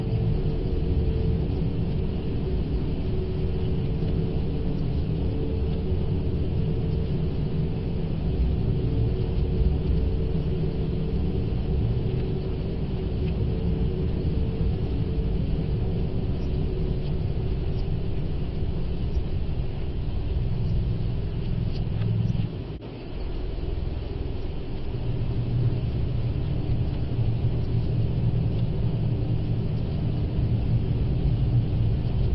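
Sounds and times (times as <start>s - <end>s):
eerie echoes in dark ambience: 0.0s - 32.3s.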